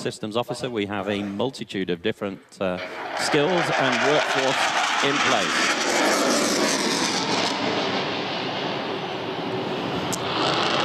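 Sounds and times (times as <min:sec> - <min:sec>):
speech: 0:00.0 - 0:06.1
airplane banking hard to the left during air show: 0:02.8 - 0:10.8.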